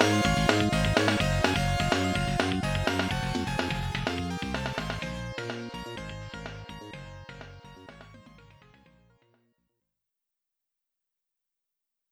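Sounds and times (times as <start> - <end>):
FM synth: 0.0 - 8.8.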